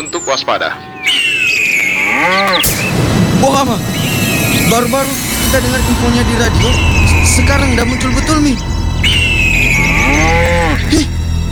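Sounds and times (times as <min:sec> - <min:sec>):
speech: 0:00.0 - 0:01.2, 0:02.1 - 0:04.1, 0:04.7 - 0:08.7, 0:10.0 - 0:11.1
hum: 0:00.0 - 0:11.4
cow mooing: 0:00.5 - 0:02.8, 0:09.2 - 0:11.2.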